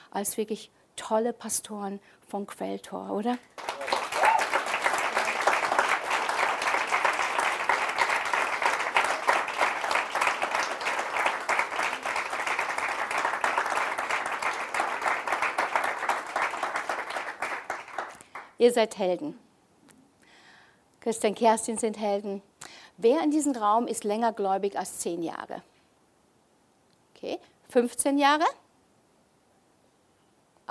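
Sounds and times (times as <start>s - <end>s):
speech: 0.2s - 3.7s, 18.6s - 19.4s, 21.0s - 25.7s, 27.7s - 28.6s
sizable audience applause: 3.5s - 18.5s.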